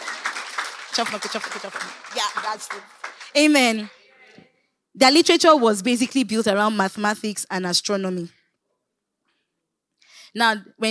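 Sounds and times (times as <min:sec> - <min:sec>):
audience clapping: 0:00.0 - 0:04.0
speech: 0:01.0 - 0:04.0, 0:05.0 - 0:08.4, 0:10.3 - 0:10.9.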